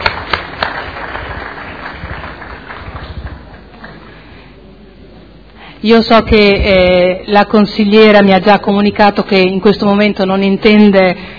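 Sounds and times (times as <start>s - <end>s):
applause: 0.0s - 4.2s
speech: 5.8s - 11.3s.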